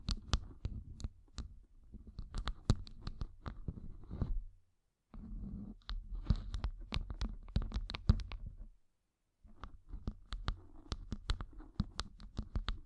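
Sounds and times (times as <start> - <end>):
gem-covered fingertips tapping and scratching: 0.0 - 4.4, 5.2 - 8.7, 9.5 - 12.8
soft low rustle: 5.2 - 6.5.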